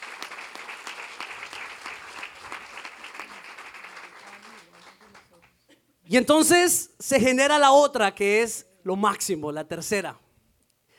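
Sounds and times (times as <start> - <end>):
applause: 0.0 - 5.6
speech: 6.1 - 10.2.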